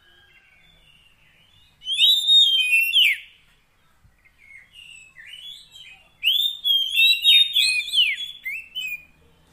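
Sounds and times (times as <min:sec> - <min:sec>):
Oriental magpie-robin whistling: 0:00.0 - 0:03.5, 0:04.2 - 0:09.2.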